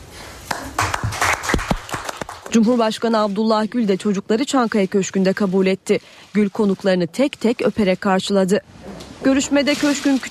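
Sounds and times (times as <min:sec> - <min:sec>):
scattered applause from a small group: 0:00.5 - 0:02.6
speech: 0:02.5 - 0:10.2.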